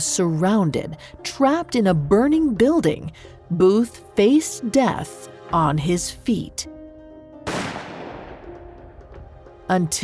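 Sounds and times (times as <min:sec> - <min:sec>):
speech: 0:00.0 - 0:06.8, 0:09.7 - 0:10.0
gunshot dramatizing the shot that killed John Wilkes Booth: 0:07.5 - 0:08.8.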